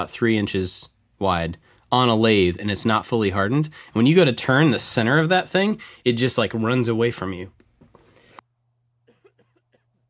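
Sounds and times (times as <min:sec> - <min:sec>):
speech: 0:00.0 - 0:07.6
cough or throat clearing: 0:09.0 - 0:10.0.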